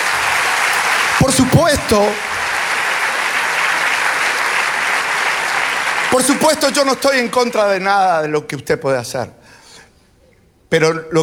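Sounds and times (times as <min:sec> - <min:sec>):
audience applause: 0:00.0 - 0:07.8
speech: 0:01.3 - 0:02.3, 0:06.1 - 0:09.4, 0:10.7 - 0:11.2.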